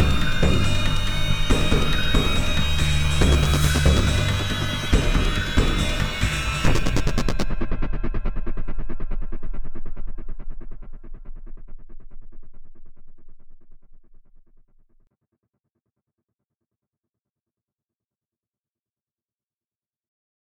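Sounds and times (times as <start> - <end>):
suspense intro music: 0.0 - 13.9.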